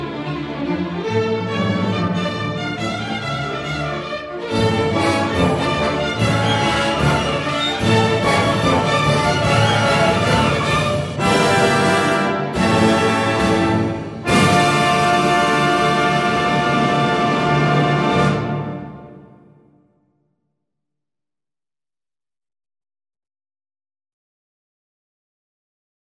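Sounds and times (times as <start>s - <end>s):
symphonic dance music: 0.0s - 19.8s.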